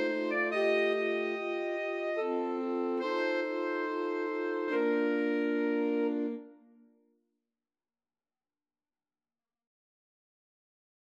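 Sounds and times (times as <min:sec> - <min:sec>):
alto sax quartet: 0:00.0 - 0:06.7.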